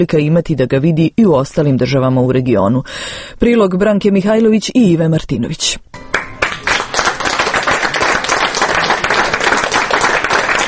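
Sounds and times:
speech: 0:00.0 - 0:06.2
audience clapping after a documentary screening at the Media Center in Belgrade: 0:06.0 - 0:10.6.

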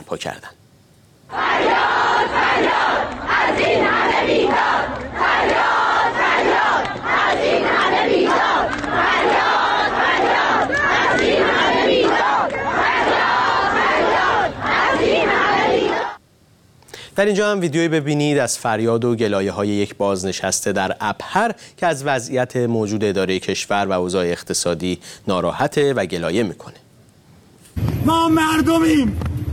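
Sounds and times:
speech: 0:00.1 - 0:00.6, 0:01.3 - 0:05.8, 0:17.2 - 0:26.8, 0:27.8 - 0:29.4
large protest crowd chanting a slogan in unison: 0:01.3 - 0:16.2.

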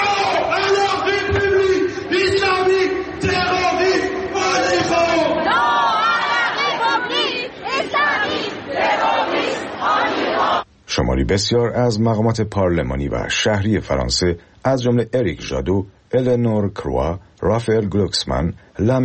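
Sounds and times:
protesters shouting: 0:00.0 - 0:10.6
protesters chanting slogans while marching through Paris: 0:03.1 - 0:10.6
speech: 0:11.2 - 0:19.0.

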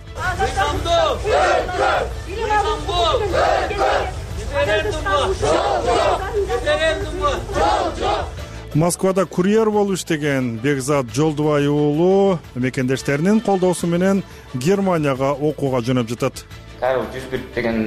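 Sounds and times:
marchers in Bishkek chanting slogans against a referendum: 0:00.2 - 0:08.5
speech: 0:02.0 - 0:17.8.

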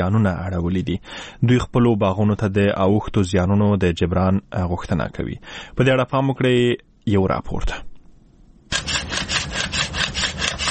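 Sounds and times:
speech: 0:00.0 - 0:07.9
hand saw cutting down a pomegranate orchard tree in Arghandab, Kandahar: 0:08.7 - 0:10.6.

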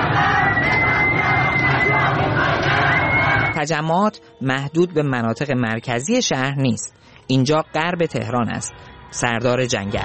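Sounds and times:
crowd of protesters chanting slogans in street: 0:00.0 - 0:03.6
high whistle-like tone: 0:00.1 - 0:03.8
speech: 0:03.6 - 0:10.0.

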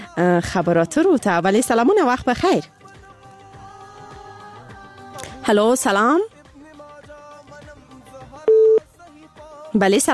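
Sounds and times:
speech: 0:00.2 - 0:02.8, 0:05.5 - 0:06.3, 0:09.7 - 0:10.1
telephone busy tone after a call drops: 0:08.5 - 0:08.8.

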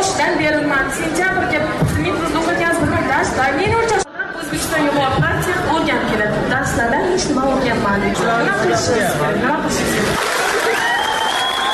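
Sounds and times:
voices and crowd chatter: 0:00.0 - 0:11.7
speech: 0:00.2 - 0:01.8, 0:04.8 - 0:10.3
participants at a university meeting applauding: 0:09.9 - 0:11.7.

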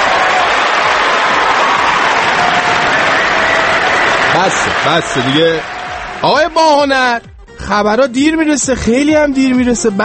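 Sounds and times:
crowd clapping: 0:00.0 - 0:07.2
speech: 0:04.4 - 0:10.0.

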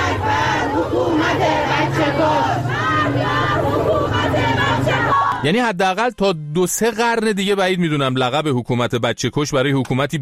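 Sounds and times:
protest crowd chanting slogans: 0:00.0 - 0:05.5
speech: 0:05.4 - 0:10.2.

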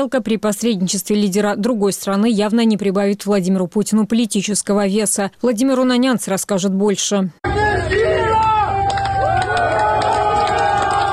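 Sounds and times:
speech: 0:00.0 - 0:08.6
crowd applauding in Rostov-on-Don: 0:07.5 - 0:11.1.

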